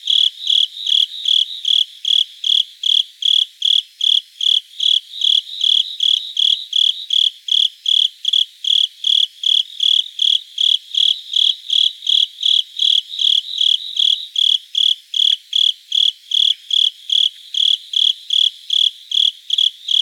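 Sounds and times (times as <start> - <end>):
Japanese burrowing cricket chirping: 0.0 - 20.0.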